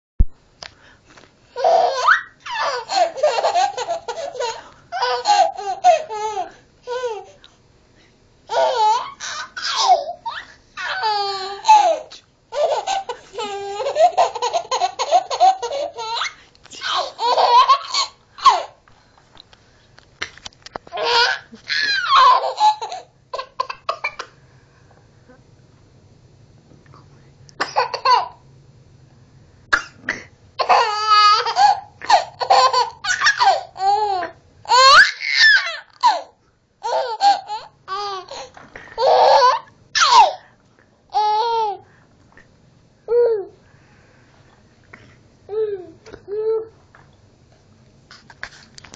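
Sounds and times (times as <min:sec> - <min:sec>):
baby laughing: 0:01.6 - 0:07.4, 0:08.5 - 0:18.8, 0:20.9 - 0:24.3, 0:27.8 - 0:28.4, 0:30.6 - 0:40.4, 0:41.1 - 0:41.8.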